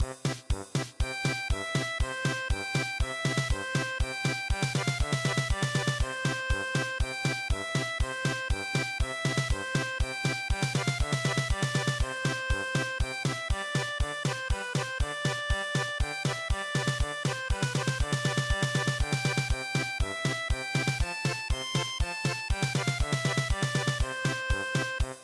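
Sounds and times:
German polka music: 0.0s - 25.2s.

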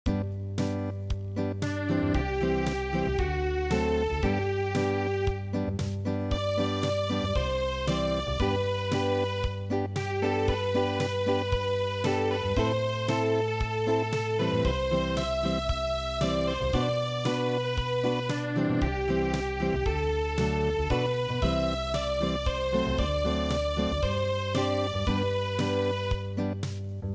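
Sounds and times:
unplugged midi music: 0.1s - 27.1s.

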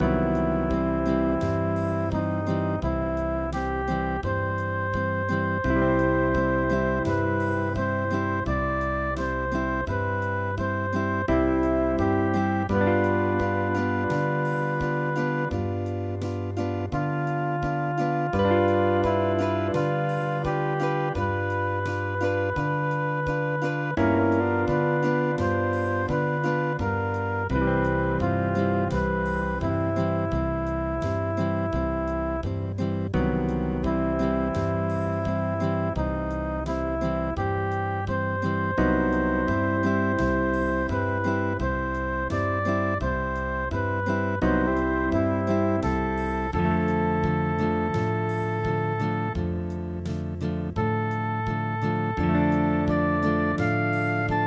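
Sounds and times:
Hawaiian MIDI music: 0.0s - 54.4s.

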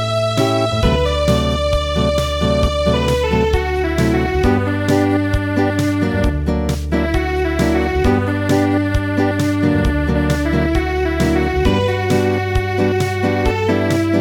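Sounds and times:
acoustic traditional midi music: 0.0s - 14.2s.

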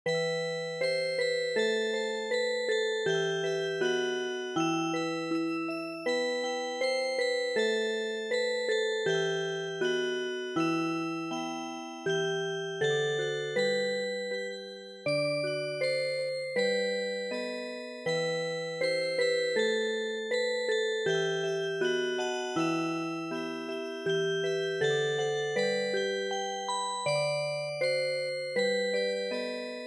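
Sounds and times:
music box: 0.1s - 29.8s.

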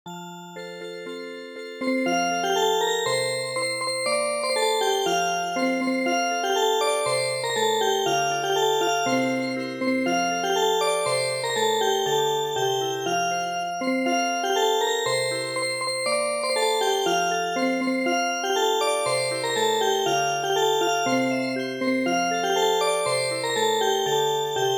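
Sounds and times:
music box: 0.1s - 24.7s.

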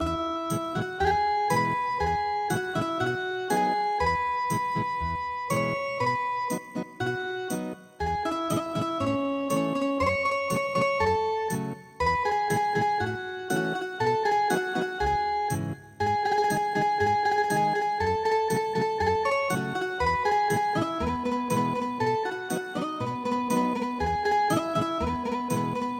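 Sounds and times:
ethnic guitar music: 0.0s - 25.9s.

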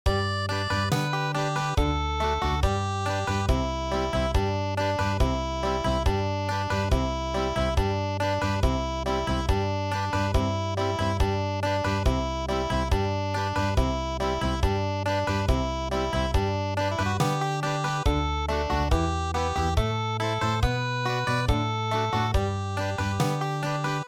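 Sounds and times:
traditional country music: 0.1s - 24.0s.

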